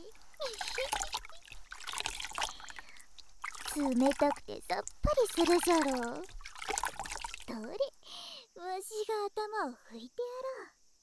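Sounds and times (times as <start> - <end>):
water pouring and splashing as a head is rinsed during a bath: 0.0 - 8.0
speech: 3.8 - 6.4, 7.5 - 8.0, 8.6 - 10.8.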